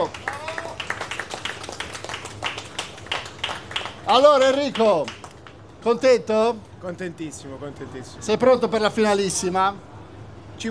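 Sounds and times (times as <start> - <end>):
audience applause: 0.0 - 5.6
speech: 4.1 - 5.2, 5.8 - 9.9.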